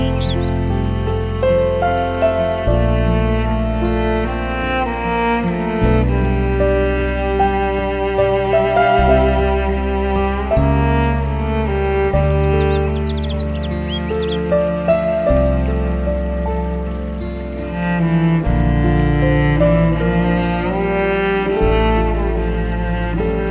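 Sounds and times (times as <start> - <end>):
birds: 0.0 - 3.4, 11.0 - 18.4
Japanese music: 0.0 - 23.5
stream flowing: 0.0 - 23.5.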